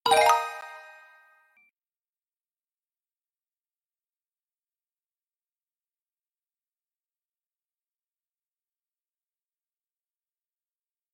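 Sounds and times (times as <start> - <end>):
correct answer sound: 0.1 - 1.3.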